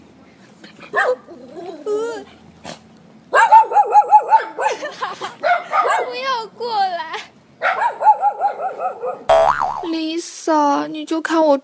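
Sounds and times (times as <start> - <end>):
stray dogs barking: 0.9 - 1.3, 3.3 - 6.2, 7.6 - 9.3
speech: 0.9 - 2.4, 10.0 - 11.6.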